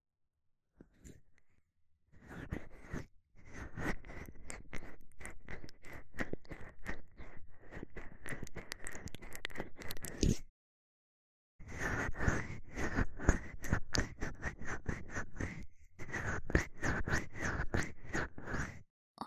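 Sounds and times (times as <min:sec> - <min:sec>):
finger ear cleaning sounds: 0:02.2 - 0:10.4, 0:11.6 - 0:18.8.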